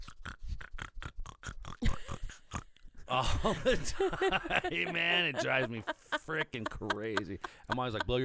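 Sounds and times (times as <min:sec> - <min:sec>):
voice imitating snorting through a blocked nose: 0:00.0 - 0:02.7
laughter: 0:03.1 - 0:08.2
speech: 0:03.1 - 0:08.2.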